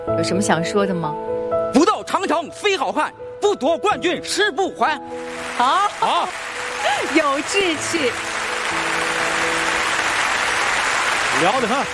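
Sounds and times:
speech: 0.1 - 9.0, 11.4 - 11.9
studio audience applause at a quiz competition: 5.2 - 11.9.

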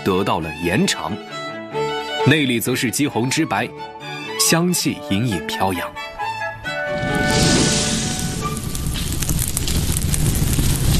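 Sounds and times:
speech: 0.0 - 6.2
fire burning fiercely under iron wok: 6.8 - 10.9.

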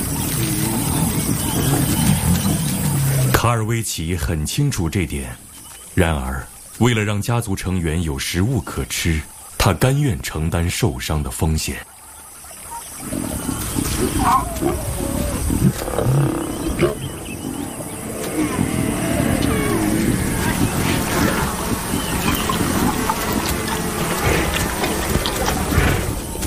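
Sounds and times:
lions growling and snarling while feeding: 0.0 - 3.4, 12.8 - 26.4
speech: 3.4 - 12.0, 13.0 - 17.1.

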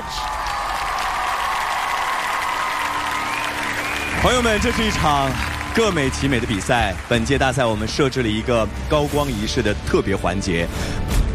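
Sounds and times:
audience applause: 0.0 - 8.4
speech: 4.2 - 11.0.

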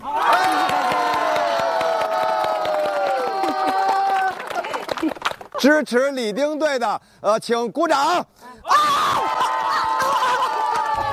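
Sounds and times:
crowd cheering and shouting: 0.0 - 4.5, 8.6 - 11.1
speech: 5.6 - 9.5.

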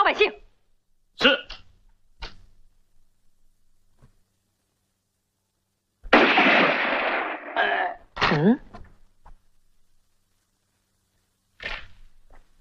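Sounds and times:
speech: 0.1 - 0.4, 8.4 - 8.6
gunshot in a radio drama: 6.1 - 7.7.

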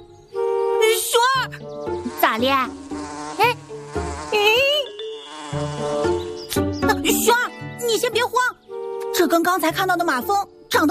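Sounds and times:
honeybees buzzing: 0.4 - 8.1
speech: 2.4 - 2.8, 7.9 - 8.6, 9.2 - 10.8.

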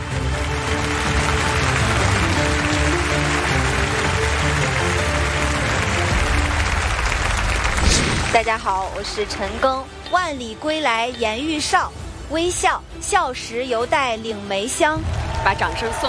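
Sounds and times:
audience applause: 0.0 - 8.7, 15.0 - 16.0
speech: 8.4 - 16.0.

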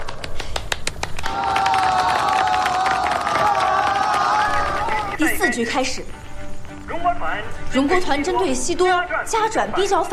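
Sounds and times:
thunderous applause: 0.0 - 5.2
crowd cheering: 0.0 - 5.4
speech: 5.2 - 6.3, 7.0 - 10.1.

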